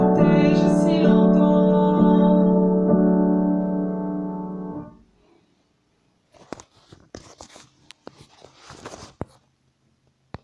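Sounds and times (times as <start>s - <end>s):
alto part: 0.0s - 5.0s.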